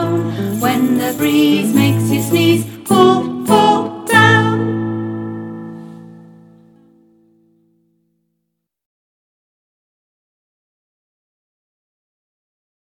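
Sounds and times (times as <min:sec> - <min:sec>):
nursery rhyme song: 0:00.0 - 0:06.3.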